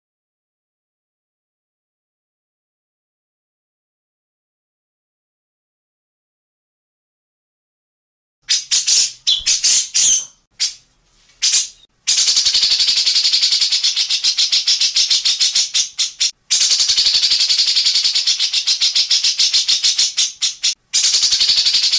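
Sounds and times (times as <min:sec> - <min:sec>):
grey-cheeked bulbul harsh rattling song: 0:08.5 - 0:10.8, 0:11.4 - 0:21.9.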